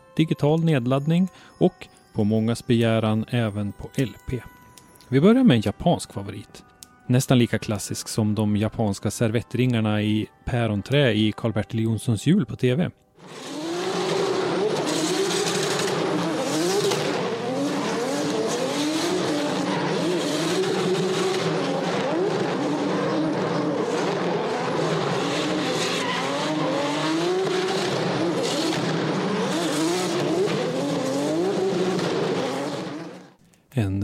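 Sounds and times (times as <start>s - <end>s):
speech: 0.2s - 13.6s
Toyota 2JZ engine revving: 13.2s - 33.4s
tire squeal: 13.2s - 33.4s.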